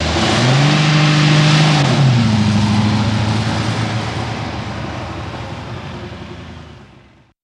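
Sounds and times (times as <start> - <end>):
Cadillac engine revving high: 0.0 - 5.3.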